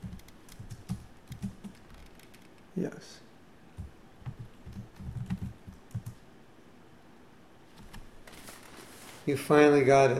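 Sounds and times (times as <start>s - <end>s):
fingers typing on a computer keyboard: 0.0s - 2.5s, 3.8s - 6.2s, 7.8s - 8.1s
speech: 2.8s - 3.2s, 9.3s - 10.1s.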